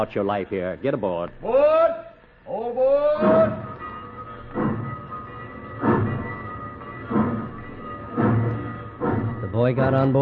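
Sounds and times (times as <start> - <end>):
speech: 0.0 - 1.9, 9.6 - 10.2
train rolling on rails: 3.2 - 10.2.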